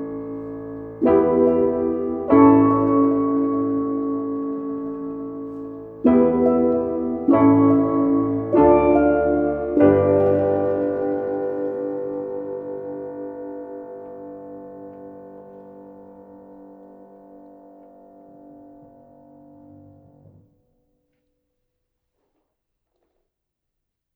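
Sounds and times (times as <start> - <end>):
chords: 0.0 - 15.8.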